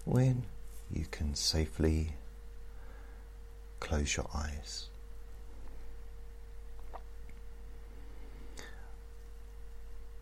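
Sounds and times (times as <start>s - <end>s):
speech: 0.0s - 2.2s, 3.8s - 4.9s
faint high whine: 0.0s - 10.1s
laptop electrical buzz: 0.0s - 10.1s.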